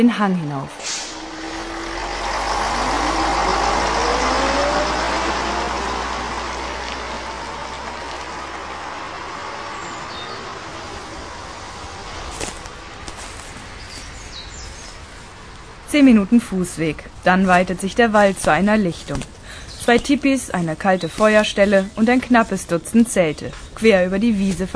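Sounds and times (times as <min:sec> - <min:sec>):
speech: 0:00.0 - 0:00.9, 0:15.9 - 0:24.7
bus engine idling at stop: 0:00.6 - 0:24.7.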